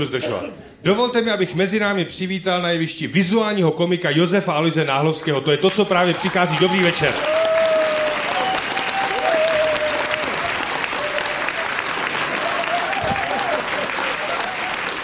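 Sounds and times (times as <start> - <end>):
speech: 0.0 - 7.7
audience applause: 5.7 - 15.0.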